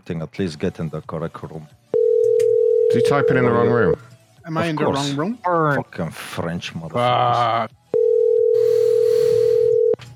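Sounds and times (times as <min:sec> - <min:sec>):
speech: 0:00.0 - 0:01.8, 0:02.9 - 0:07.8
steady telephone tone of an unanswered call: 0:02.0 - 0:03.4, 0:08.0 - 0:10.0.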